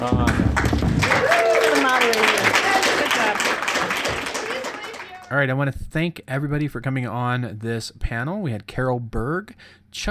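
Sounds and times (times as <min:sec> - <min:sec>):
speech: 0:00.0 - 0:00.5, 0:05.3 - 0:10.1
audience applause for the moderator: 0:00.0 - 0:05.3.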